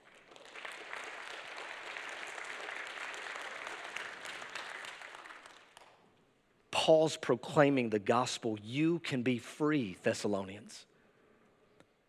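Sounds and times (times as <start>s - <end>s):
audience clapping hands: 0.0s - 6.1s
speech: 6.9s - 10.9s.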